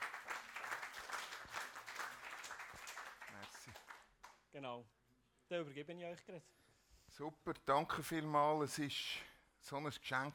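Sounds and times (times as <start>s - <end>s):
warm applause from audience: 0.0s - 4.1s
speech: 4.6s - 10.3s.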